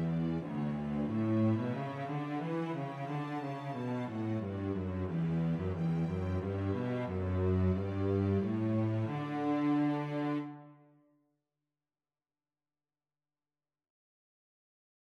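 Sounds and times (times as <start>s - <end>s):
cello: 0.0s - 10.9s.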